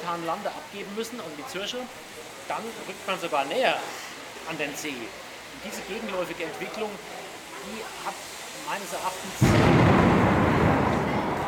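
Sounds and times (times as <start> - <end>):
speech: 0.1 - 10.4
thunder rumbling in a thunderstorm: 9.3 - 11.4.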